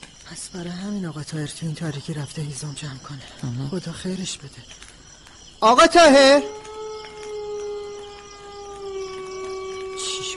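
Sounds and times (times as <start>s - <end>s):
speech: 0.3s - 4.9s, 5.6s - 6.6s
wolves howling at night: 5.7s - 10.3s.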